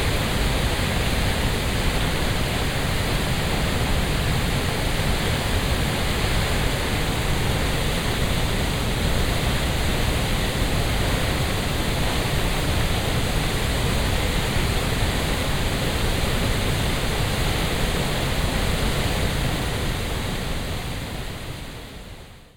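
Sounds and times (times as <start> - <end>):
Oexararfoss waterfall: 0.0 - 22.5.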